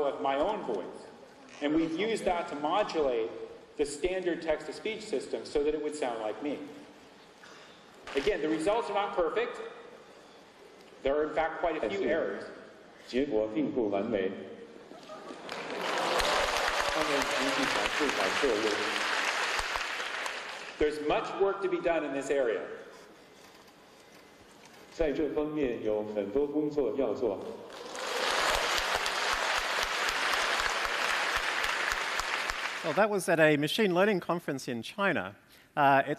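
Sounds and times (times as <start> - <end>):
speech: 0.0 - 6.8, 8.1 - 9.8, 11.0 - 14.5, 17.0 - 19.1, 20.8 - 22.8, 25.0 - 27.7, 32.8 - 36.1
spontaneous applause at a machine learning conference: 15.2 - 20.8, 27.7 - 33.1.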